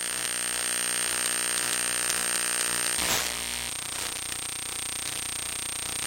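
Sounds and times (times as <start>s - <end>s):
ambient electric hum buzz: 0.0s - 6.0s.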